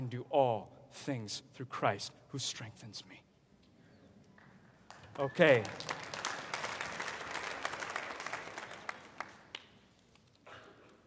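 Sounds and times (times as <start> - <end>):
speech: 0.2 - 3.2, 5.2 - 6.0
audience clapping: 4.4 - 10.0.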